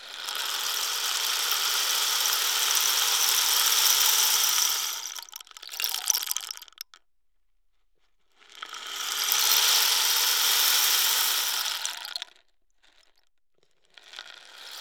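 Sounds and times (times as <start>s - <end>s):
African rain stick: 0.3s - 7.0s, 8.9s - 12.3s.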